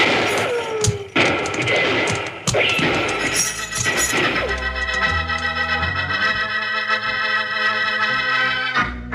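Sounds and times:
gunfire in a radio western: 0:00.0 - 0:04.6
held musical chord: 0:04.6 - 0:09.0.

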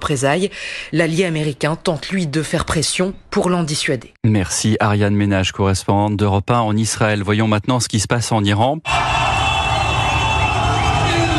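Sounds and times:
speech: 0:00.0 - 0:09.1
frenzied crowd cheering in Tehran: 0:08.9 - 0:11.3.

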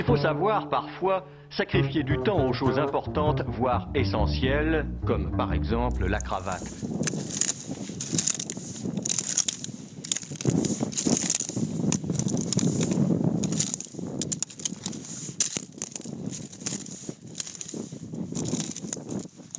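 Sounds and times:
speech: 0:00.1 - 0:07.3
footsteps on a bed of mussels: 0:05.9 - 0:19.5.

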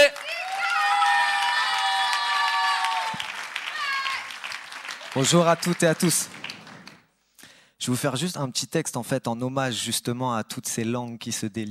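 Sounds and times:
whoops and cheers: 0:00.0 - 0:04.4
crowd applauding: 0:00.0 - 0:07.1
speech: 0:05.2 - 0:06.4, 0:07.9 - 0:11.6.

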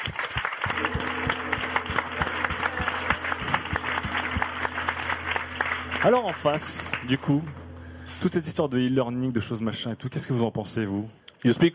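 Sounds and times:
audience applause: 0:00.0 - 0:07.5
speech: 0:06.0 - 0:07.6, 0:08.2 - 0:11.7.

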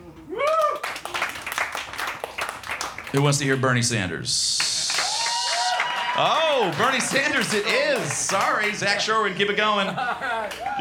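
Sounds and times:
audience applause: 0:00.4 - 0:03.6, 0:04.6 - 0:09.0, 0:10.4 - 0:10.8
speech: 0:03.1 - 0:04.7, 0:06.2 - 0:10.8
laughter: 0:08.9 - 0:10.8.

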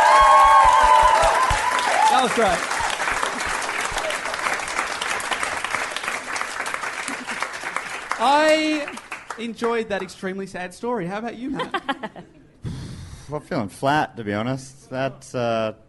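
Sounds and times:
audience applause: 0:00.0 - 0:09.8
speech: 0:02.2 - 0:02.7, 0:08.2 - 0:12.3, 0:13.3 - 0:15.8
laughter: 0:11.4 - 0:12.6.

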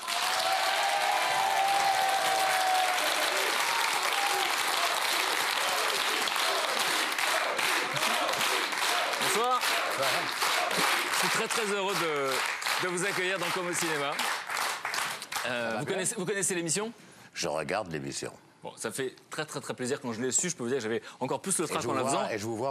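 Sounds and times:
studio audience applauding an actor on a French TV show: 0:00.0 - 0:16.0
speech: 0:11.2 - 0:14.4, 0:15.4 - 0:22.7.

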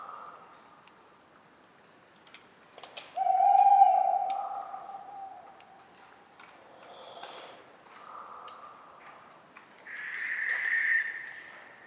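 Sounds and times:
tawny owl hoot: 0:03.2 - 0:05.8, 0:09.9 - 0:11.8.

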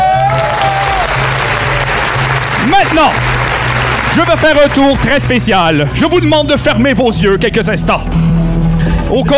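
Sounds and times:
audience applause: 0:00.2 - 0:05.4
speech: 0:02.9 - 0:03.3, 0:04.1 - 0:08.3, 0:09.1 - 0:09.3.

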